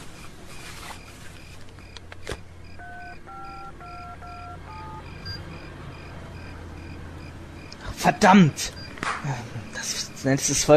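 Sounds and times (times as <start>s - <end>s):
hum: 0.0s - 10.7s
mobile phone keypad tones while dialing: 2.7s - 6.6s, 8.7s - 9.0s
speech: 8.0s - 10.7s.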